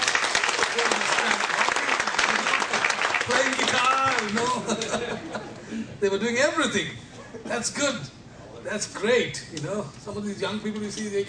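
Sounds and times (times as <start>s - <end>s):
audience applause: 0.0s - 4.9s
speech: 0.8s - 1.4s, 4.3s - 11.2s
laughter: 4.3s - 5.9s.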